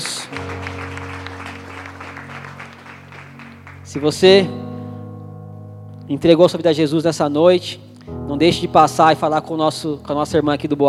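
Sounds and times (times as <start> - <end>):
audience applauding: 0.0 - 4.4
speech: 3.9 - 4.6, 6.1 - 10.8.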